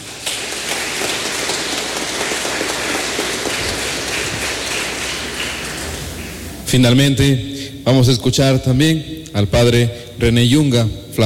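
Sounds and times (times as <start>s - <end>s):
crowd clapping: 0.0s - 6.7s
speech: 6.7s - 11.2s.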